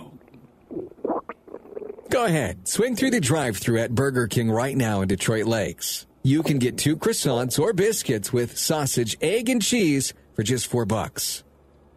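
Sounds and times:
stomach rumbling: 0:00.0 - 0:02.1
speech: 0:02.1 - 0:11.5.

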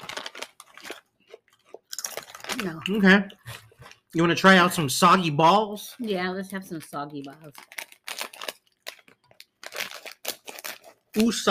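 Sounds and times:
crunchy chewing on corn chips: 0:00.0 - 0:04.1, 0:07.5 - 0:11.5
speech: 0:02.6 - 0:03.5, 0:04.1 - 0:07.7, 0:11.2 - 0:11.5.

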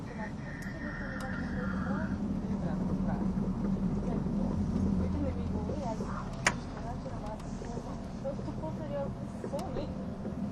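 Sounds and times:
faint whine: 0:00.0 - 0:09.8
voices murmuring inside a train: 0:00.0 - 0:10.3
ETR610 tilting train running rumble on the Gotthard Base Tunnel route: 0:00.0 - 0:10.5.

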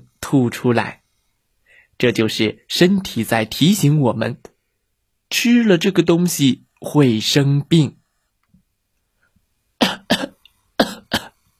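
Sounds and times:
speech: 0:00.3 - 0:01.0, 0:02.0 - 0:04.5, 0:05.3 - 0:08.0
harsh coughs: 0:09.8 - 0:11.4.

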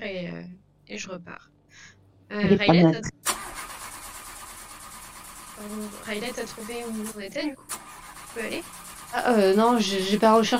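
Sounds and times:
speech: 0:00.9 - 0:03.2, 0:05.6 - 0:07.8, 0:08.4 - 0:10.5
car engine cranking without catching: 0:03.2 - 0:10.5.

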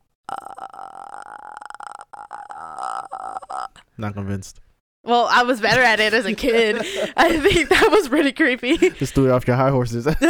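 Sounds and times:
speech: 0:00.3 - 0:01.5, 0:04.0 - 0:10.2
person making clicking noise with mouth and throat: 0:00.3 - 0:03.8
laughter: 0:06.2 - 0:09.3, 0:10.1 - 0:10.2.

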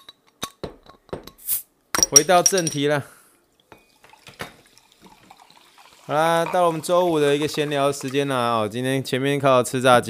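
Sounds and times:
speech: 0:02.1 - 0:03.2, 0:06.1 - 0:10.0
sparkling water poured into a glass: 0:03.6 - 0:08.5.

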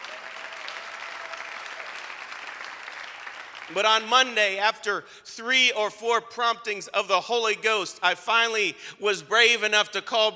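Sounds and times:
church congregation applauding: 0:00.0 - 0:04.4
speech: 0:03.7 - 0:10.3.

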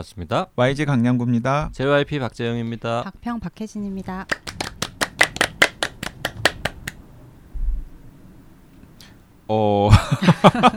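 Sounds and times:
speech: 0:00.0 - 0:04.5, 0:09.5 - 0:10.7
people clapping: 0:04.3 - 0:07.0
low rumble: 0:07.0 - 0:08.3
laughter: 0:09.9 - 0:10.7.

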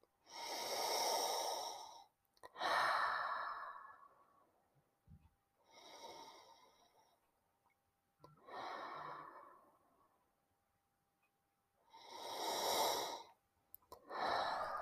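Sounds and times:
long deep breaths in: 0:00.2 - 0:04.4, 0:05.6 - 0:07.3, 0:08.3 - 0:10.2, 0:11.8 - 0:13.4, 0:14.0 - 0:14.7.

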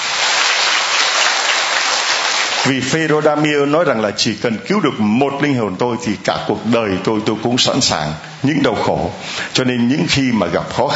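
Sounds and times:
church congregation applauding at a Catholic mission station: 0:00.0 - 0:03.5
speech: 0:02.6 - 0:10.9.

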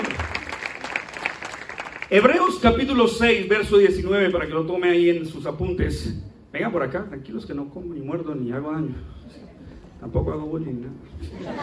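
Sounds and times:
audience applause: 0:00.0 - 0:02.3
speech: 0:02.1 - 0:11.6.

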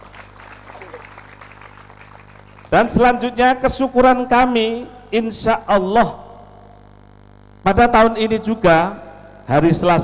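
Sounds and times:
guests' light applause at a dormitory completion ceremony: 0:00.0 - 0:03.0
speech: 0:02.7 - 0:06.2, 0:07.6 - 0:10.0.

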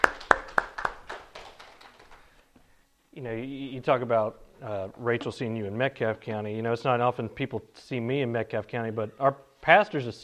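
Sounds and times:
audience applause: 0:00.0 - 0:02.4
speech: 0:03.2 - 0:10.2.

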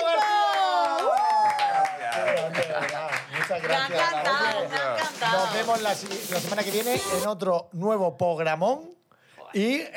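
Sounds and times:
audience applause: 0:00.0 - 0:06.8
speech: 0:03.5 - 0:09.9.

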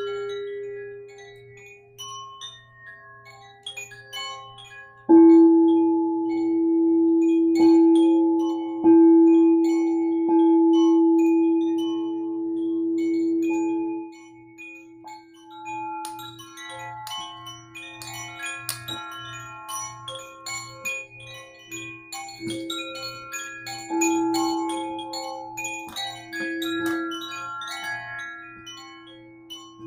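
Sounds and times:
sound bowl ringing: 0:00.0 - 0:29.8
wind chimes tinkling: 0:00.0 - 0:29.8.

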